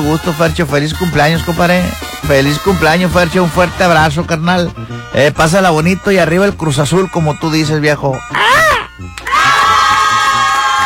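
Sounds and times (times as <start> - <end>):
speech: 0.1 - 9.2
crowd cheering and whooping: 9.2 - 10.8.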